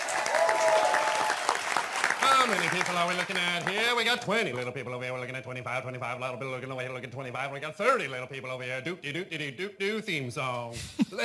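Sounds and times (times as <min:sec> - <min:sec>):
crowd applauding: 0:00.0 - 0:04.3
speech: 0:02.4 - 0:11.2.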